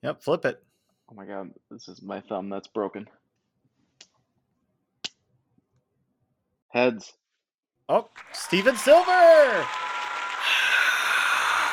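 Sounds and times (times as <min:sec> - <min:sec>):
speech: 0:00.0 - 0:03.2, 0:06.7 - 0:07.2, 0:07.9 - 0:10.6
crowd cheering and applause: 0:07.9 - 0:11.7.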